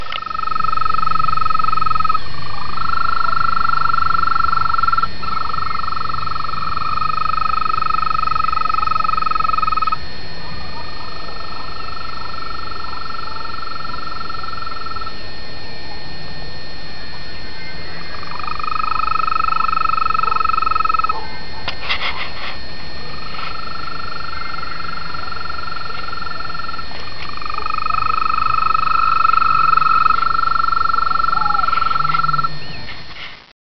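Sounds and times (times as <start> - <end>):
frog: 0.0 - 33.5.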